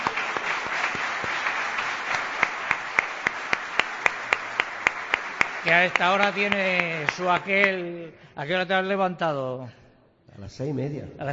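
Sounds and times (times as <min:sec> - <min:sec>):
audience applause: 0:00.0 - 0:07.8
speech: 0:05.6 - 0:09.8, 0:10.4 - 0:11.3.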